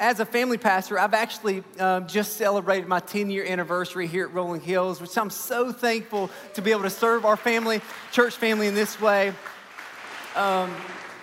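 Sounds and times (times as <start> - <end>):
speech: 0.0 - 9.6, 10.4 - 11.0
audience applause: 6.3 - 11.2.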